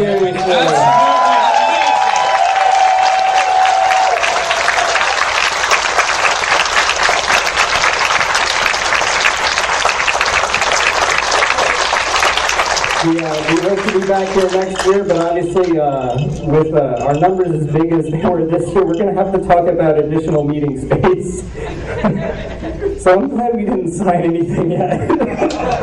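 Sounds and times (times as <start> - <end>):
audience applause: 0.0 - 16.2, 25.4 - 25.8
speech: 14.1 - 25.8
laughter: 21.4 - 23.1, 24.4 - 25.8.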